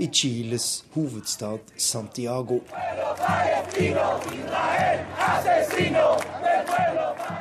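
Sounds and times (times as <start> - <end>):
speech: 0.0 - 7.0
thousands of protesters chanting outside the Israeli embassy in Santiago, Chile: 2.6 - 7.3.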